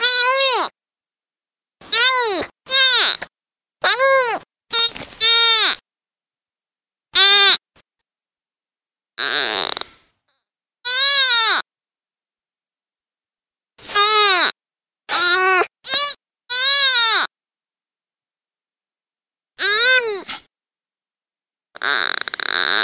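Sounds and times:
deer fawn distress calls, loud harsh bleats: 0:00.0 - 0:00.7, 0:01.8 - 0:05.8, 0:07.2 - 0:07.6, 0:09.2 - 0:09.8, 0:10.9 - 0:11.6, 0:13.9 - 0:14.5, 0:15.1 - 0:17.3, 0:19.6 - 0:20.3, 0:21.8 - 0:22.8.

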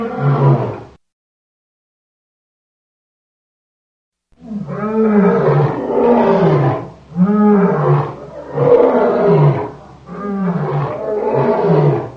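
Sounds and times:
lion roaring grunts: 0:04.4 - 0:12.1.

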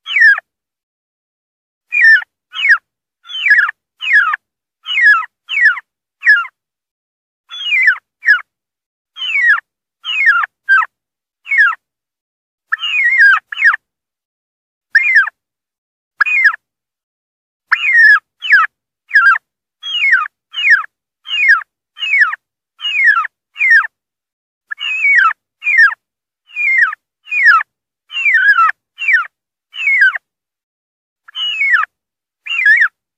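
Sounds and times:
wild turkey distress calling: 0:00.0 - 0:00.4, 0:01.9 - 0:06.5, 0:07.5 - 0:08.4, 0:09.2 - 0:10.9, 0:11.5 - 0:11.8, 0:12.7 - 0:13.8, 0:15.0 - 0:15.3, 0:16.2 - 0:16.6, 0:17.7 - 0:23.9, 0:24.7 - 0:30.2, 0:31.3 - 0:33.0.

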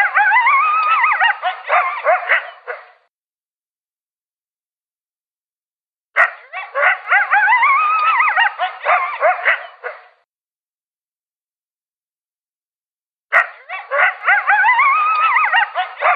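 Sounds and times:
coyote yipping and howling: 0:00.0 - 0:03.0, 0:06.2 - 0:10.1, 0:13.4 - 0:16.1.

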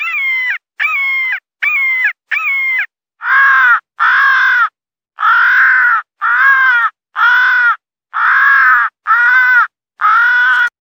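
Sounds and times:
crow distress call at a hawk: 0:00.0 - 0:10.8.

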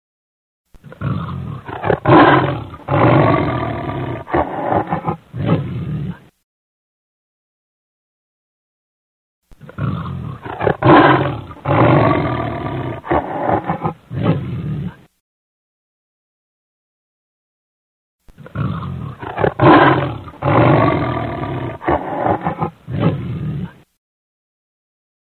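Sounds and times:
lion giving deep throaty roars: 0:00.8 - 0:06.3, 0:09.6 - 0:15.1, 0:18.4 - 0:23.8.

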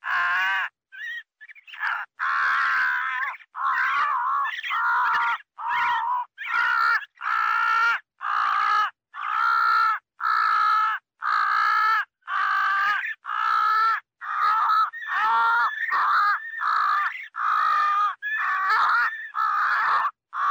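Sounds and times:
crow cawing: 0:00.0 - 0:00.7, 0:01.8 - 0:20.4.

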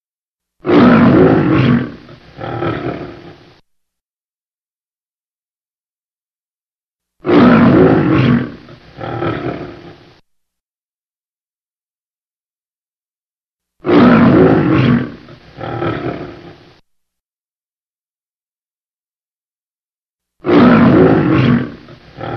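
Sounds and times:
lion roaring: 0:00.6 - 0:03.6, 0:07.2 - 0:10.2, 0:13.8 - 0:16.8, 0:20.4 - 0:22.3.

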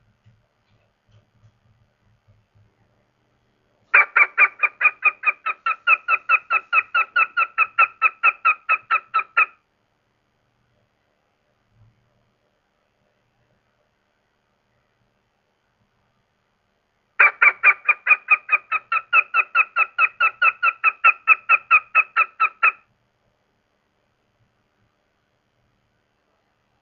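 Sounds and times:
goshawk calling: 0:04.0 - 0:09.6, 0:17.2 - 0:22.8.

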